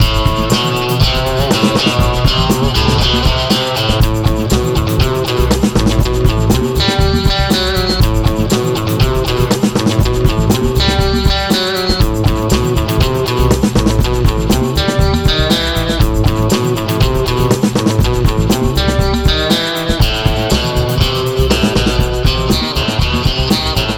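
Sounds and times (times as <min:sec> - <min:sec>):
guitar remix: 0:00.0 - 0:23.9.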